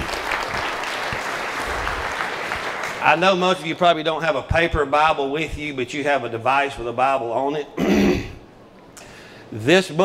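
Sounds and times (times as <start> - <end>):
audience clapping hands in praise: 0.0 - 3.6
speech: 3.0 - 7.9, 9.5 - 10.0.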